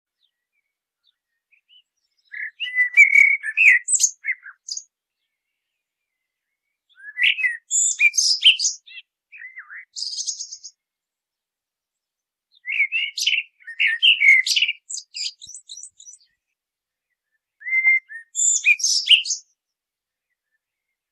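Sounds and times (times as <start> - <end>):
common blackbird song: 0.1 - 21.1.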